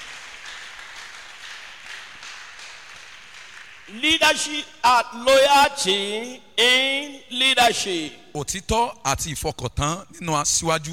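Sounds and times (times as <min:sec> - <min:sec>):
audience applause: 0:00.0 - 0:03.9
speech: 0:03.9 - 0:10.9.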